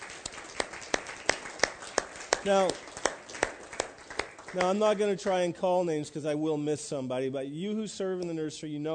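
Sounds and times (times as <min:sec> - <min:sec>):
audience clapping: 0:00.0 - 0:05.5
speech: 0:02.4 - 0:02.9, 0:04.5 - 0:08.9.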